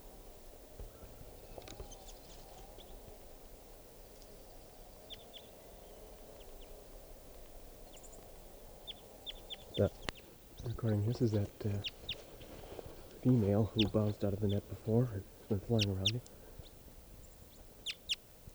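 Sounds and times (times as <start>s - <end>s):
juvenile crossbill singing: 4.4s - 6.8s, 7.5s - 18.3s
low rumble: 8.8s - 18.5s
speech: 9.8s - 10.1s, 10.8s - 12.0s, 13.2s - 16.4s.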